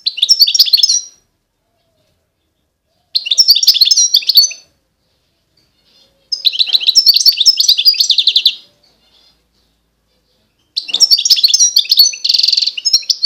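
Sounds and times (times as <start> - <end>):
wild European goldfinch singing: 0.0 - 1.2, 3.1 - 4.7, 5.6 - 13.2.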